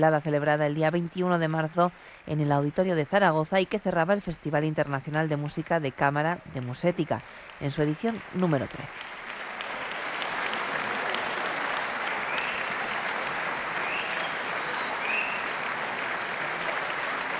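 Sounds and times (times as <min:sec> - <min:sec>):
speech: 0:00.0 - 0:09.1
concert audience applause: 0:06.6 - 0:17.3.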